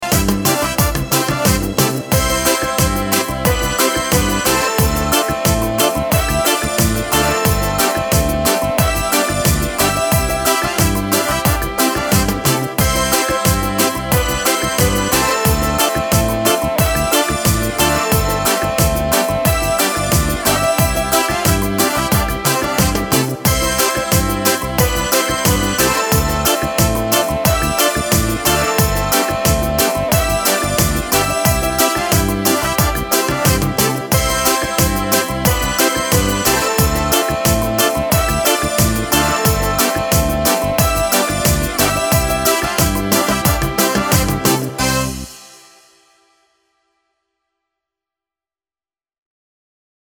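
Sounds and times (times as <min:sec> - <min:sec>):
cumbia music: 0:00.0 - 0:46.1.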